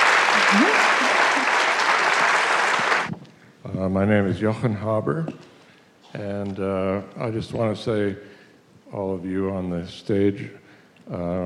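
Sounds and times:
audience applause: 0.0 - 3.1
speech: 0.5 - 0.8, 3.9 - 5.5, 6.1 - 11.4.

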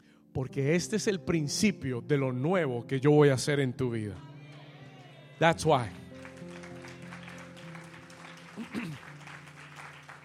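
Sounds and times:
speech: 0.4 - 4.3, 5.4 - 6.0
audience clapping: 4.9 - 10.2.

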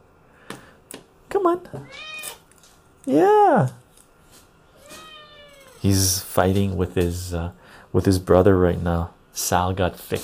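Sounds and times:
speech: 1.4 - 2.2, 3.1 - 3.8, 5.8 - 10.2
cat meowing: 1.8 - 2.4, 4.8 - 5.8.

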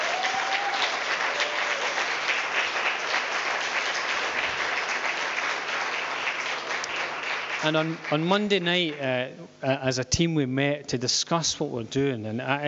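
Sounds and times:
church congregation applauding the worship team: 0.0 - 9.1
speech: 7.6 - 12.6.

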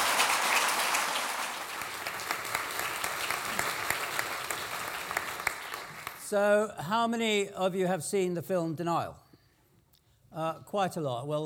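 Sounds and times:
audience clapping welcoming a speaker: 0.0 - 6.4
speech: 6.3 - 9.2, 10.4 - 11.4.

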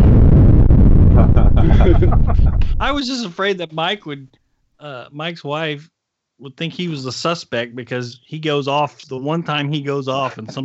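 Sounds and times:
explosion sound effect: 0.0 - 3.0
laughter: 1.1 - 3.2, 10.1 - 10.6
speech: 2.0 - 10.6.

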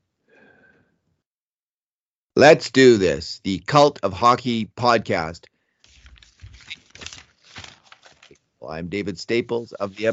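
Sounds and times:
speech: 2.4 - 5.5, 8.6 - 10.1
paper rustling and crinkling: 5.8 - 8.5, 9.4 - 10.1.

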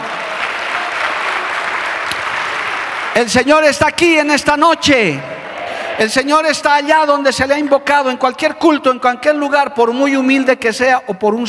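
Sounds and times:
audience applause: 0.0 - 3.7
speech: 3.2 - 5.3, 6.0 - 11.4.

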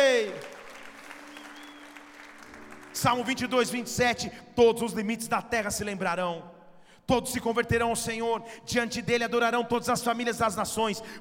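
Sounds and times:
audience applause: 0.0 - 3.4
speech: 3.0 - 11.2.

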